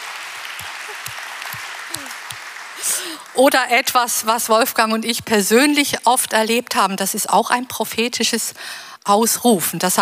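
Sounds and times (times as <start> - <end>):
audience applause: 0.0 - 3.4
speech: 3.0 - 10.0.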